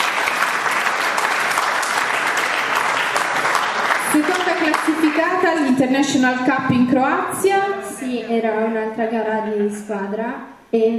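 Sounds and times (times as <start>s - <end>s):
audience applause: 0.0s - 5.6s
speech: 4.6s - 10.9s.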